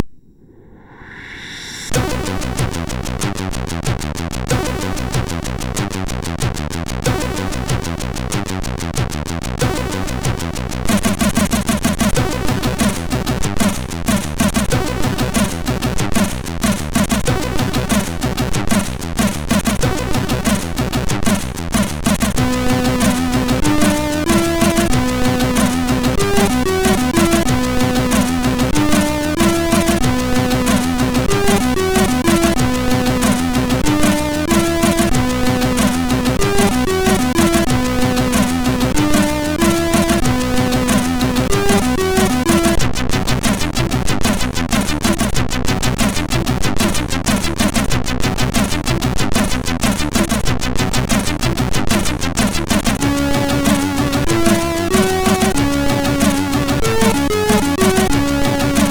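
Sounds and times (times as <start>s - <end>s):
chaotic techno on a MOS6581R2 SID chip: 1.9s - 58.8s.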